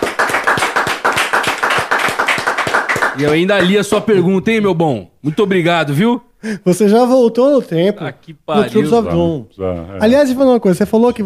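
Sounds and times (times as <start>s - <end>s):
round of applause from a group: 0.0s - 4.1s
speech: 3.2s - 11.2s.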